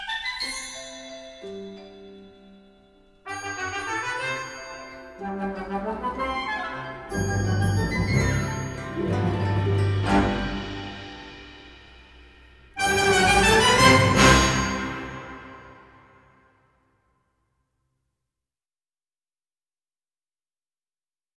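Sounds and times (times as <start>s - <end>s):
holiday waltz: 0.0s - 11.9s, 12.8s - 16.1s.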